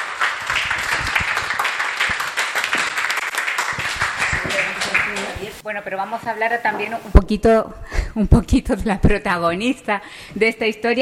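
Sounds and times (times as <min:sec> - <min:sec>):
audience applause: 0:00.0 - 0:05.6
speech: 0:05.6 - 0:11.0.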